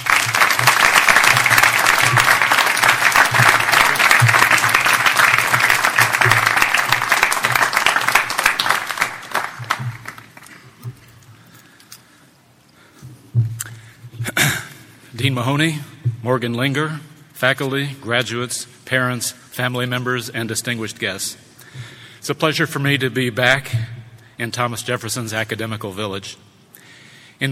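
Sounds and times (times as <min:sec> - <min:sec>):
commencement audience applause welcoming a speaker: 0:00.0 - 0:10.8
speech: 0:15.3 - 0:26.5.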